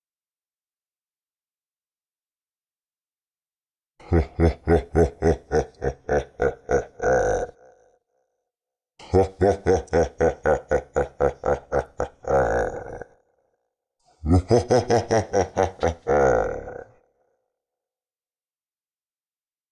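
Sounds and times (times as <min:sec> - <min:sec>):
scary horror laugh: 0:04.0 - 0:08.0, 0:09.0 - 0:13.4, 0:14.1 - 0:17.3.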